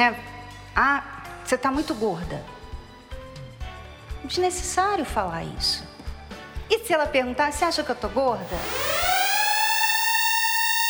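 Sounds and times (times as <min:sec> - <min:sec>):
speech: 0:00.0 - 0:02.6, 0:04.2 - 0:05.9, 0:06.7 - 0:08.9
alarm siren sound effect: 0:08.4 - 0:10.8.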